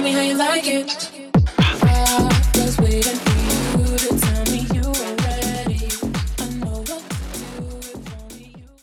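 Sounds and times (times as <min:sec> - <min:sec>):
125 BPM music mashup: 0:01.4 - 0:08.4.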